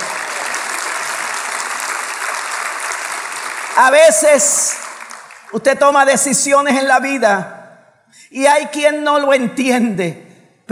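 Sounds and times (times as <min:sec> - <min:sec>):
audience applause: 0:00.0 - 0:05.7
speech: 0:03.8 - 0:04.8, 0:05.5 - 0:07.6, 0:08.3 - 0:10.7.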